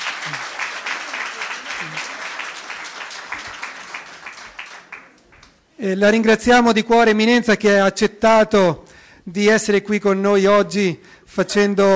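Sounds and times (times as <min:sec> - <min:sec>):
audience applause: 0:00.0 - 0:05.5
speech: 0:00.2 - 0:00.5, 0:01.8 - 0:02.1, 0:05.8 - 0:11.9.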